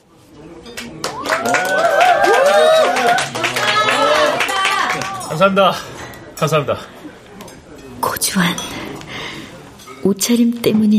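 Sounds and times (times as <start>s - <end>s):
people standing and applauding a guest: 0.7s - 5.5s
speech: 5.4s - 7.0s, 8.3s - 8.8s, 10.0s - 10.9s.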